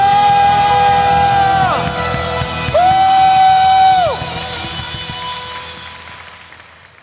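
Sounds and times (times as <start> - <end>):
audience shouting in victory: 0.0 - 5.0
audience clapping: 0.0 - 7.0.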